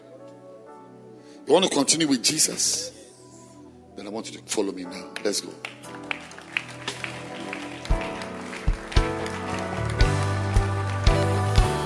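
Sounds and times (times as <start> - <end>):
speech: 1.5 - 3.0, 4.0 - 6.4
audience clapping in rhythm: 5.1 - 11.8.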